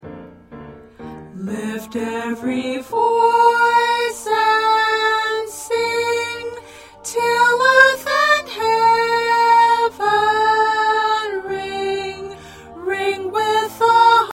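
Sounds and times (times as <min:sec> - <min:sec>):
choir with soprano: 0:01.3 - 0:14.3.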